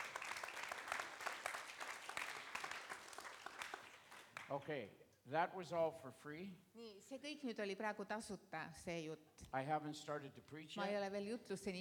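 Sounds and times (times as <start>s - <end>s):
audience clapping: 0.0s - 4.9s
speech: 4.5s - 11.8s.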